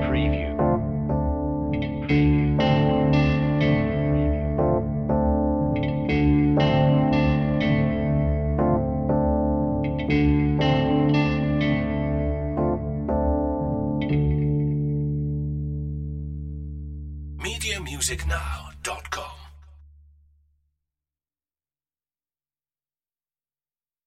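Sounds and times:
guitar: 0.0s - 18.3s
piano: 0.0s - 18.7s.

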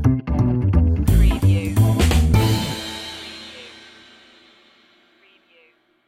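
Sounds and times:
swing music stinger: 0.2s - 4.2s.

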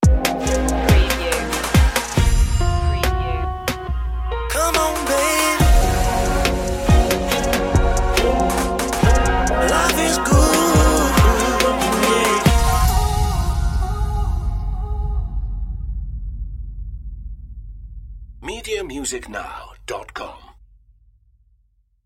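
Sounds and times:
smooth soul music: 0.0s - 15.3s.

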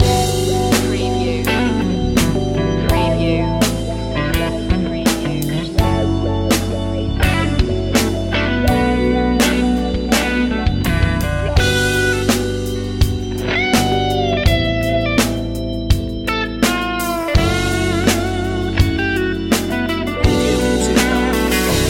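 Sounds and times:
groove music loop: 0.0s - 21.8s.

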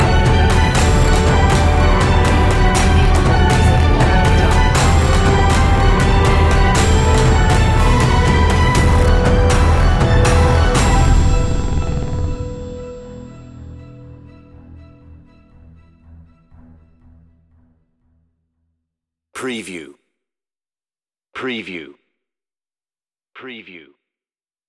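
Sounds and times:
strong breakout drums: 0.0s - 11.7s.

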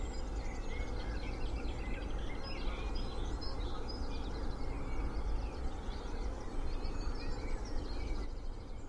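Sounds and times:
spring dawn chorus of birds in Cheshire UK: 0.0s - 8.8s.

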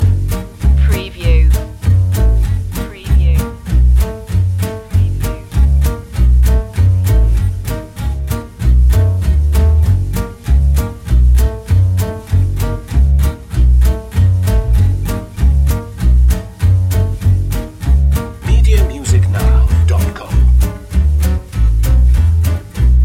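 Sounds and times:
feel good swing music: 0.0s - 23.0s.

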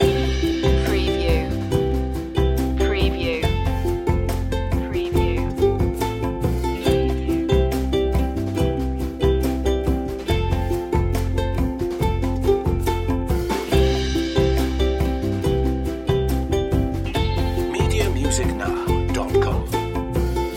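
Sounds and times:
confident and happy music loop: 0.0s - 20.5s.

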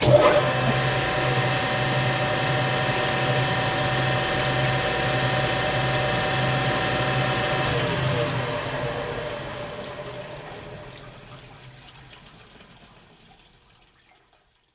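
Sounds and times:
grinder: 0.0s - 9.3s.

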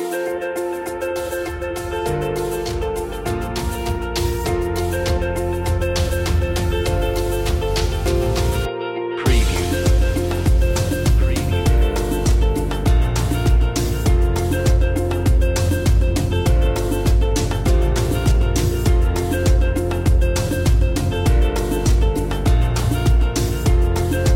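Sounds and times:
corporate background music: 0.0s - 24.3s.

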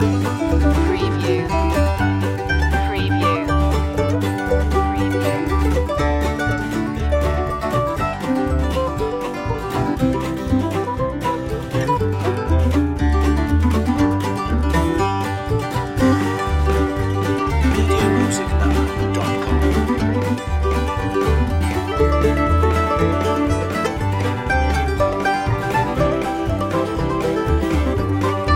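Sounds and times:
hoedown music loop: 0.0s - 28.5s.

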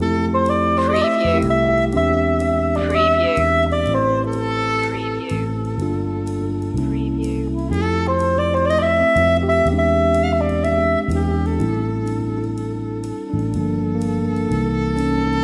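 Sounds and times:
music loop: 0.0s - 15.4s.

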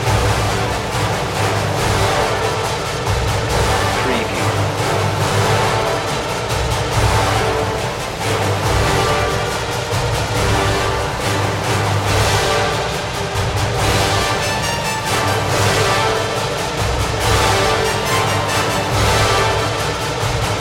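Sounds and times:
brass percussion: 0.0s - 20.5s.

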